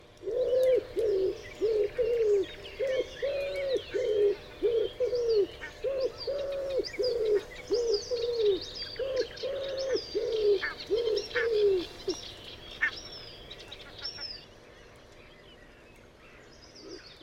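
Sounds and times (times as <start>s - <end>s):
common wood pigeon Columba palumbus cooing: 0.2s - 12.2s, 16.9s - 17.2s.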